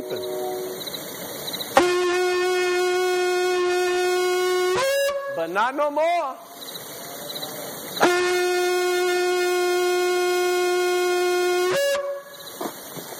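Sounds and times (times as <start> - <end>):
speech: 0.1 - 0.4, 5.4 - 6.7
shofar blown: 1.8 - 5.5, 8.0 - 12.4.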